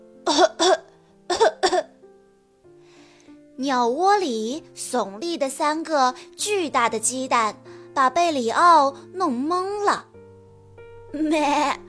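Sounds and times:
person coughing from choking on dust: 0.3 - 1.9
speech: 3.6 - 10.1, 11.1 - 11.8.

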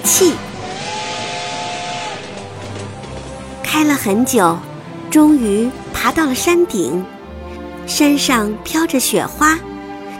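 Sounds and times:
toy train steam whistle: 0.0 - 2.4
rushing steam hiss: 0.0 - 3.6
speech: 0.1 - 0.5, 3.8 - 7.2, 7.9 - 9.7.

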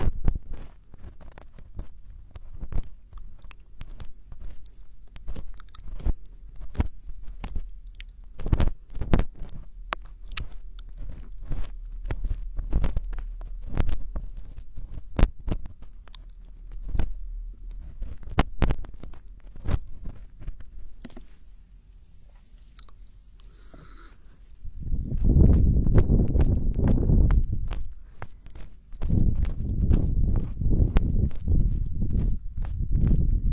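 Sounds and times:
ear picking sharp crackles and scratchy clicks: 0.0 - 33.5
louder dense rubbing and rustling: 0.0 - 33.5
soft low rumble: 0.0 - 33.5.

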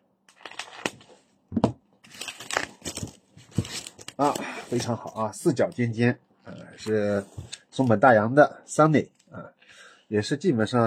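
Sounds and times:
bubble-wrap packaging being unwrapped: 0.3 - 1.1, 2.0 - 5.0
speech: 4.2 - 9.2, 10.1 - 10.8.

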